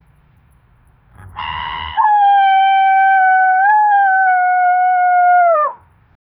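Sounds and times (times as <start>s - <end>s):
animal vocalizations: 1.2s - 5.9s.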